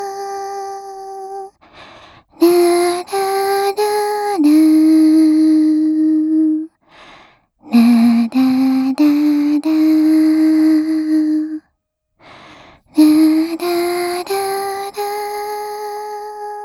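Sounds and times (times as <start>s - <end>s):
lullaby without reverb: 0.0s - 11.7s, 12.9s - 16.6s.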